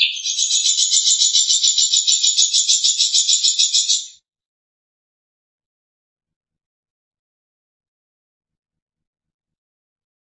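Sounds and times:
long-tailed shrike rattling call: 0.2s - 4.2s.

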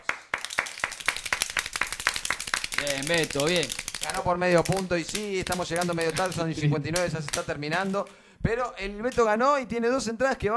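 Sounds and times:
hand clapping for a quiz winner: 0.0s - 8.2s
speech: 2.8s - 10.5s.

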